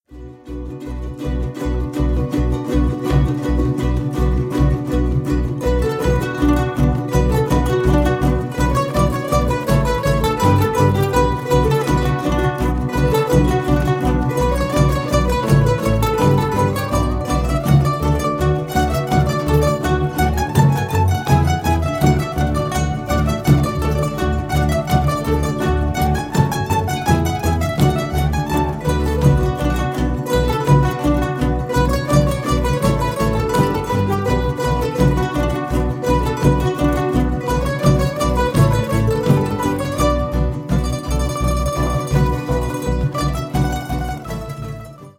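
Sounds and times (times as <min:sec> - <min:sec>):
ukuleles: 0:00.0 - 0:45.1.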